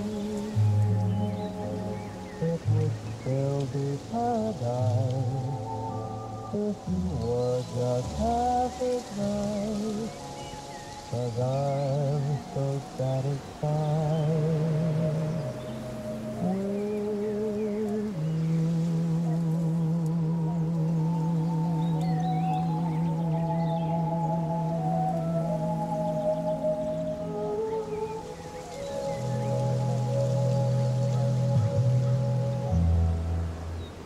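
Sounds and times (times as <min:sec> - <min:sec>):
faint birds chirping: 0:00.0 - 0:34.0
music playing from inside a cabin: 0:00.0 - 0:34.0.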